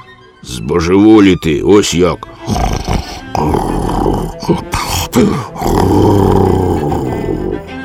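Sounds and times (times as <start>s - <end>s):
speech: 0.4s - 3.8s, 4.4s - 6.6s
spy's loud rumbling snoring: 2.3s - 7.7s.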